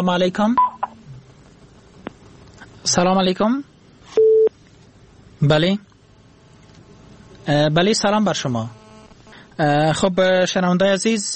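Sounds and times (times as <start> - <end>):
speech: 0.0 - 0.7, 2.8 - 3.7, 5.4 - 5.9, 7.4 - 8.8, 9.6 - 11.3
telephone dialing tones as a radio call-in host places a call: 0.6 - 1.0, 4.2 - 4.5
quiet telephone line hiss: 4.1 - 4.5.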